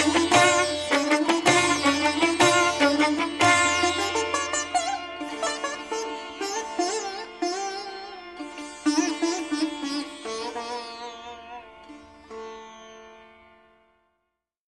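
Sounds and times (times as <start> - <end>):
sitar and violin duet: 0.0 - 14.2.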